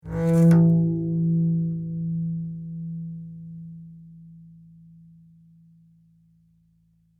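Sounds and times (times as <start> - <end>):
bowed harmonics: 0.0 - 4.3.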